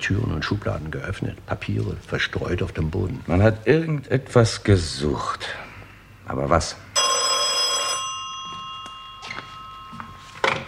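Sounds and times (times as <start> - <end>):
speech: 0.0 - 5.7, 6.3 - 6.8
telephone ringing: 7.0 - 10.6.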